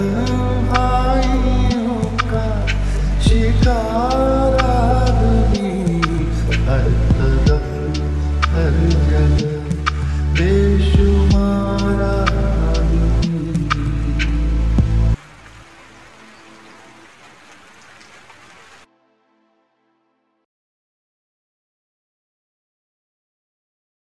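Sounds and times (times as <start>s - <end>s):
lo-fi flip music: 0.0s - 17.2s.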